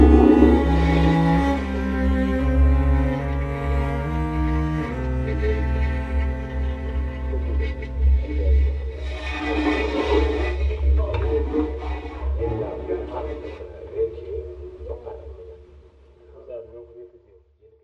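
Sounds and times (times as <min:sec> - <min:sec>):
cello: 0:00.0 - 0:13.7.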